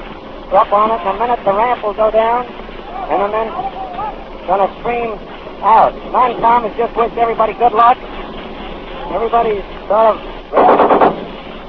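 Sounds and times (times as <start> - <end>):
speech: 0.5 - 8.2, 9.1 - 11.0
machine gun firing: 10.6 - 11.4.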